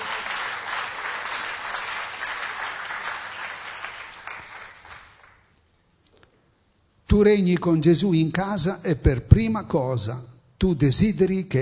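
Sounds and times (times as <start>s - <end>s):
crowd applause: 0.0s - 5.4s
speech: 7.1s - 11.6s.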